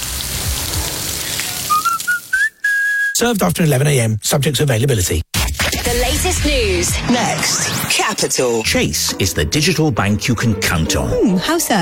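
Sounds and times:
beef burger patties sizzling on a grill: 0:00.0 - 0:02.4
high whistling tones: 0:01.6 - 0:03.2
speech: 0:03.2 - 0:05.2, 0:06.2 - 0:11.8.

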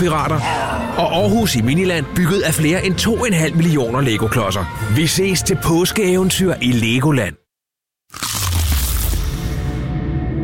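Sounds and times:
speech: 0:00.0 - 0:07.4, 0:08.1 - 0:08.4
crackling chewing: 0:08.1 - 0:09.2
crunchy bite into a crispy chicken burger: 0:08.1 - 0:09.7.

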